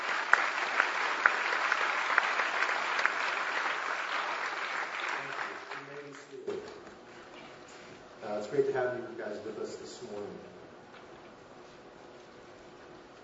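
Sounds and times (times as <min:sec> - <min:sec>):
church congregation applauding to welcome a new RUF campus minister at UCF: 0:00.0 - 0:06.5
speech: 0:08.5 - 0:10.6.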